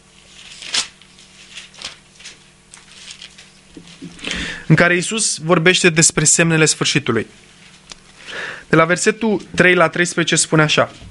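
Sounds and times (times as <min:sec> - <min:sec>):
thin pages of a Bible being turned: 0:00.2 - 0:04.4
speech: 0:04.7 - 0:07.6, 0:08.7 - 0:11.0.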